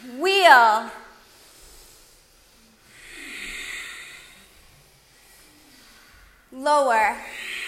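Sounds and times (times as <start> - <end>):
deep breath during a guided exercise session: 1.0 - 6.6, 7.2 - 7.6
speech: 6.6 - 7.4.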